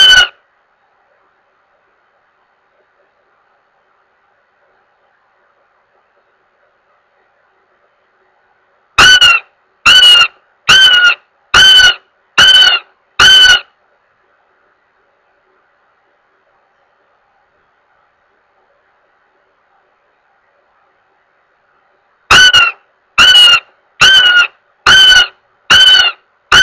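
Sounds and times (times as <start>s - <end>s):
goshawk giving harsh level wailing notes: 0.0s - 0.4s, 9.0s - 13.7s, 22.3s - 26.6s.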